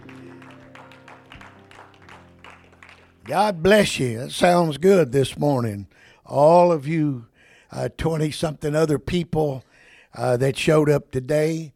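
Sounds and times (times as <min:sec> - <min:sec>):
church congregation clapping during a service: 0:00.0 - 0:04.5
speech: 0:03.3 - 0:11.7.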